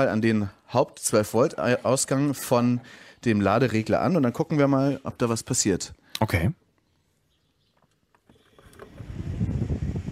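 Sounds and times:
speech: 0:00.0 - 0:06.6
small 12-volt fan running: 0:08.3 - 0:10.0.

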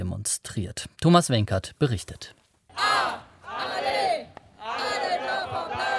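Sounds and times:
speech: 0:00.2 - 0:03.2
crowd of climate protesters chanting in the Rhineland lignite mining area: 0:02.7 - 0:05.9.

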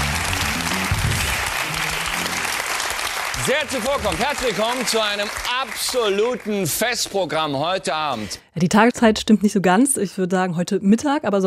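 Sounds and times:
audience applause: 0:00.0 - 0:07.8
speech: 0:03.4 - 0:11.4.

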